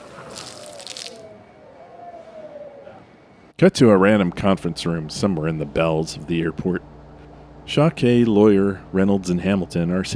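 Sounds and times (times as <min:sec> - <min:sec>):
chowder splattering on bodies: 0:00.0 - 0:01.2
speech: 0:03.6 - 0:06.9, 0:07.7 - 0:10.1.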